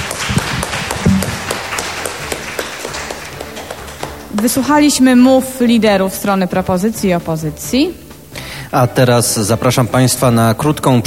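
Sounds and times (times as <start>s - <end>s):
applause: 0.0s - 4.8s
speech: 4.4s - 8.0s, 8.7s - 11.0s.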